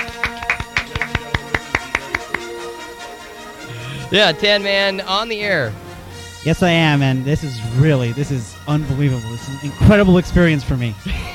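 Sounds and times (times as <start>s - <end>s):
golf clap, light polite clapping: 0.0s - 2.8s
speech: 4.1s - 5.8s, 6.4s - 11.3s.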